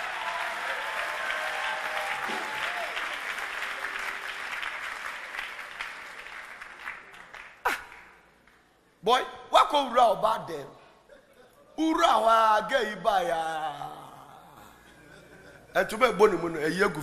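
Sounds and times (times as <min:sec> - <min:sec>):
audience applause: 0:00.0 - 0:08.2
speech: 0:09.0 - 0:10.8, 0:11.8 - 0:13.8, 0:15.8 - 0:17.0
laughter: 0:11.1 - 0:11.8, 0:13.7 - 0:15.9.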